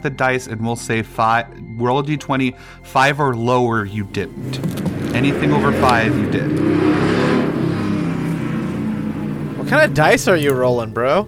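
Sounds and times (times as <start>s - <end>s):
speech: 0.0s - 7.0s, 9.7s - 11.2s
V8 engine revving: 4.0s - 11.2s.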